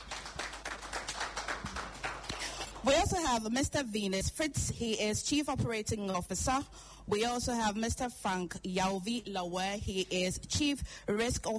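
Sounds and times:
scattered applause at an event introducing bank directors: 0.0s - 3.0s
speech: 2.8s - 11.5s.

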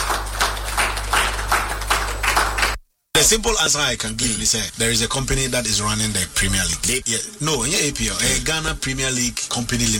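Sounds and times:
audience clapping: 0.0s - 2.8s
speech: 3.2s - 9.9s.

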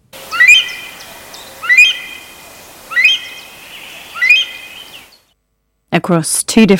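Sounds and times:
Himalayan monal calling: 0.2s - 5.2s
speech: 6.0s - 6.7s.

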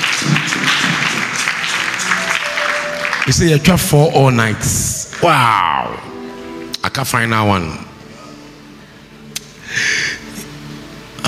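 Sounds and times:
audience clapping: 0.0s - 5.4s
speech: 3.2s - 6.1s, 6.9s - 7.9s.

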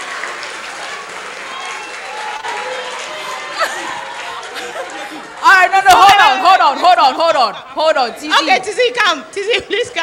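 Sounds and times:
audience clapping: 0.0s - 6.5s
laughter: 2.6s - 8.7s
speech: 6.7s - 10.0s.

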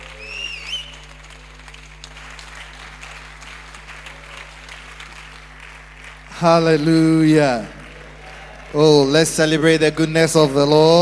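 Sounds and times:
shrill whistle: 0.0s - 1.1s
church congregation applauding in a standing ovation at a morning service: 0.0s - 11.0s
low steady hum: 0.0s - 11.0s
speech: 6.4s - 7.8s, 8.7s - 11.0s.

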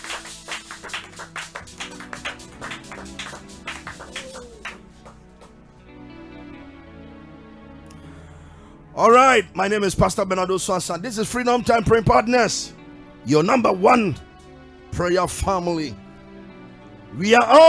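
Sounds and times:
audience clapping: 0.0s - 5.8s
speech: 9.0s - 14.3s, 15.0s - 16.0s, 17.1s - 17.6s.

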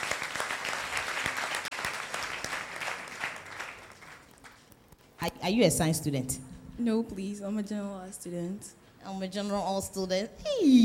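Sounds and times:
audience clapping: 0.0s - 4.8s
speech: 5.2s - 10.8s.

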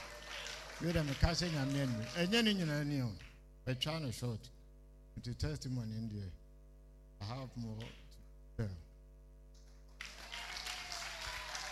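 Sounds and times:
audience clapping: 0.0s - 3.4s, 9.6s - 11.7s
speech: 0.8s - 4.6s, 5.2s - 6.4s, 7.2s - 8.0s, 8.6s - 8.8s.

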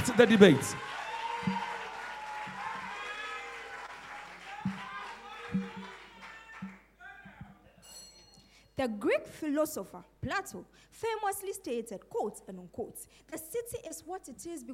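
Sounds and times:
audience clapping at a senior high school debate: 0.0s - 6.9s
speech: 0.2s - 1.6s, 8.8s - 14.7s.

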